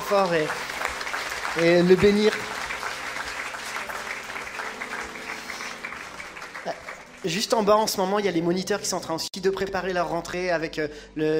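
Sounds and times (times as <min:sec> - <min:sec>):
audience applauding: 0:00.0 - 0:08.3
speech: 0:00.1 - 0:00.7, 0:01.5 - 0:02.6, 0:06.6 - 0:11.3.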